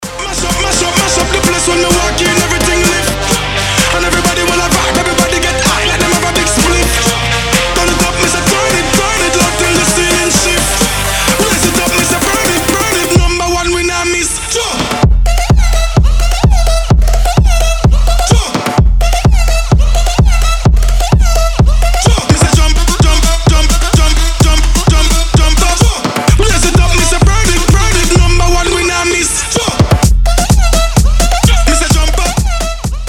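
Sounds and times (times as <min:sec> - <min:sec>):
electro house music: 0:00.0 - 0:33.0.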